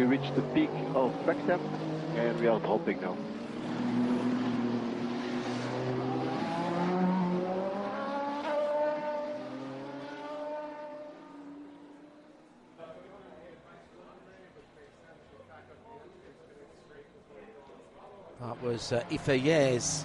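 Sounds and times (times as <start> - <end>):
speech: 0.0 - 3.5, 18.8 - 20.0
racing cars driving past: 0.0 - 14.0, 18.4 - 20.0.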